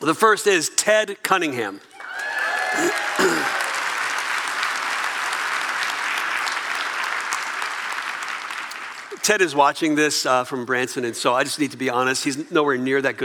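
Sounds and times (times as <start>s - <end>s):
speech: 0.0s - 1.9s, 2.7s - 3.6s, 9.3s - 13.2s
audience clapping and cheering: 1.9s - 9.2s.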